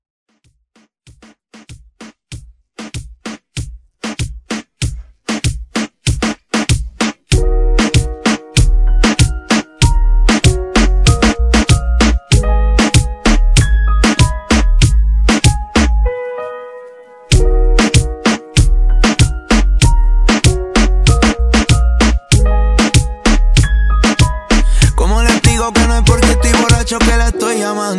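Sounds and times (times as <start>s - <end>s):
reggaeton beat intro: 0.8s - 27.9s.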